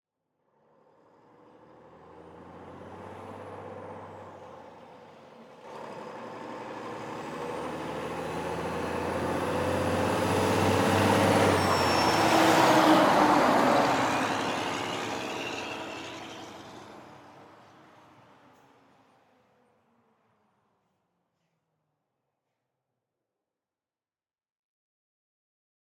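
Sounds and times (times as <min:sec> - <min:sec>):
Mack semi truck: 0:00.6 - 0:20.3.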